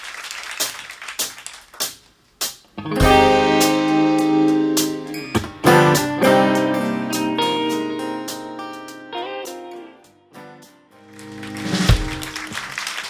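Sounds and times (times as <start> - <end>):
mellow song: 2.8 - 12.5.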